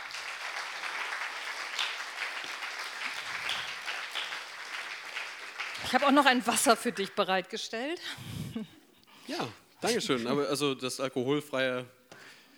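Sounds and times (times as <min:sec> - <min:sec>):
audience applause: 0:00.0 - 0:06.5
speech: 0:05.9 - 0:12.0.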